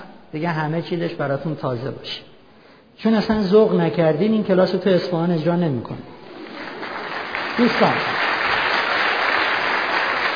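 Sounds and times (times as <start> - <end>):
speech: 0.3 - 2.3, 3.0 - 6.2, 7.6 - 8.2
applause from a marriage class audience of mostly married couples: 6.2 - 10.3.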